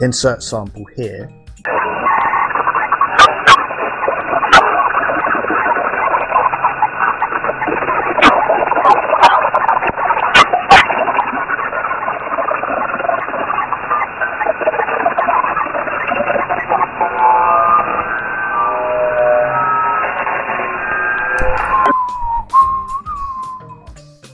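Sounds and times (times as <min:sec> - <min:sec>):
speech: 0:00.0 - 0:01.7
voice-scrambler radio signal idling with garbled noise: 0:00.0 - 0:23.6
warbling chirpy tones of voice-scrambler radio signal: 0:01.6 - 0:23.5.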